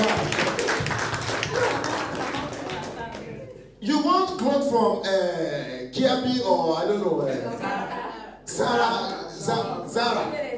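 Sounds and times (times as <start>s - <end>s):
audience clapping hands: 0.0s - 3.5s
speech: 4.7s - 7.8s, 8.6s - 10.4s.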